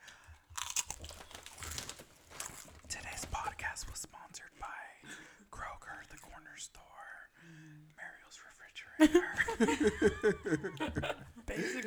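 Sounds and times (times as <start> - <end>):
chewing crunchy food: 0.0 - 6.4
speech: 9.0 - 11.1
laughter: 9.0 - 11.8.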